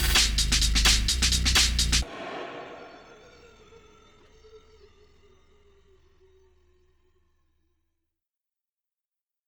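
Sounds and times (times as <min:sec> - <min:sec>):
tabata workout music: 0:00.0 - 0:03.4.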